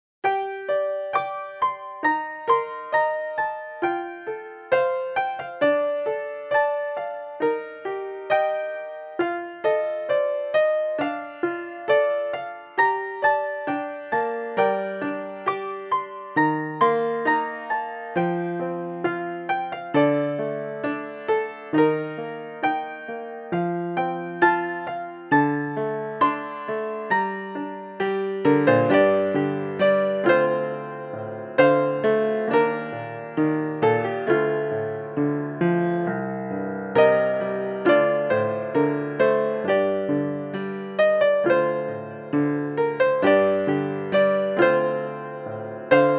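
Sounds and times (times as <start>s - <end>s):
piano: 0.0s - 46.1s.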